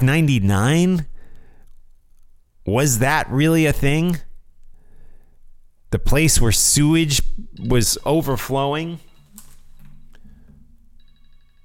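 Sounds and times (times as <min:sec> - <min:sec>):
speech: 0:00.0 - 0:01.1, 0:02.7 - 0:04.3, 0:05.9 - 0:09.1
phone ringtone: 0:07.5 - 0:11.6.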